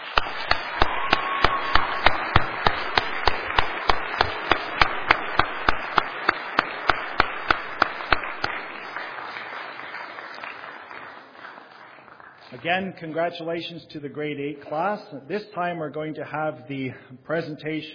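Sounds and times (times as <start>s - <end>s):
audience applause for school staff: 0.0s - 12.6s
speech: 12.6s - 17.9s.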